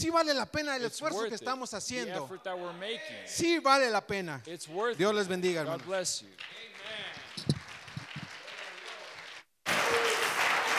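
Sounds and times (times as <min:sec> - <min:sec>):
speech: 0:00.0 - 0:07.1
audience applause: 0:06.4 - 0:10.7.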